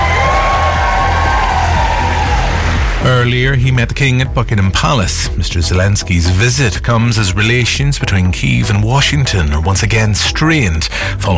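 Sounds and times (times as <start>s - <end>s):
whoops: 0.0s - 2.8s
Foreign Office staff cheering: 0.0s - 3.4s
speech: 3.1s - 11.3s.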